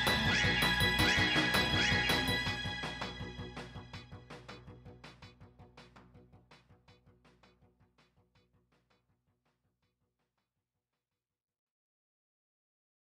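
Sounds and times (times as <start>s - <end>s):
royalty free music: 0.0s - 9.0s.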